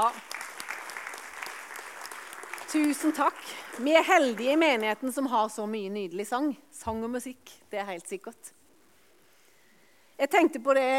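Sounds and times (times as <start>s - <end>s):
speech: 0.0s - 0.3s, 2.7s - 8.6s, 10.2s - 10.9s
audience applause: 0.0s - 4.7s.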